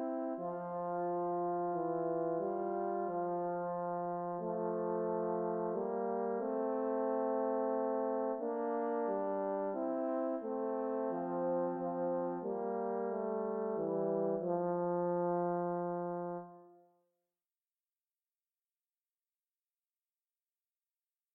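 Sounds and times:
horn duet in C major: 0:00.0 - 0:16.8.

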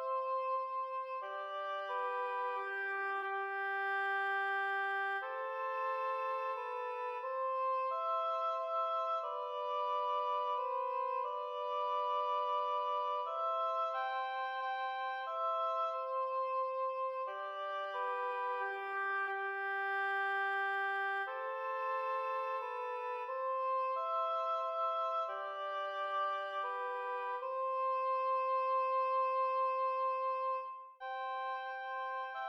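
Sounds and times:
beginning oboe duet in C major: 0:00.0 - 0:32.4.

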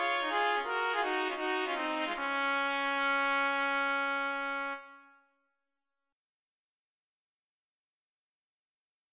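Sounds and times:
two trumpets playing a musette in E-flat major: 0:00.0 - 0:05.1.

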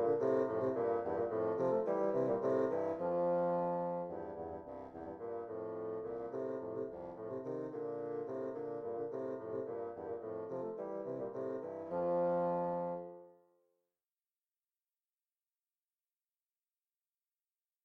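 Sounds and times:
two bassoons playing an air in F major: 0:00.0 - 0:13.2.

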